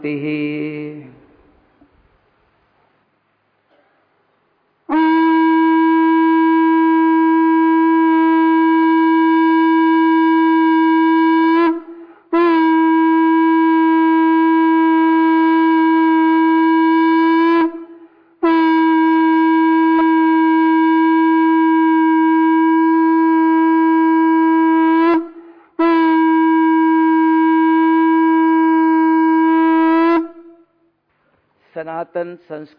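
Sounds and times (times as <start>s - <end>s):
speech: 0.0s - 1.2s, 32.4s - 32.7s
conch shell being blown: 4.9s - 30.9s.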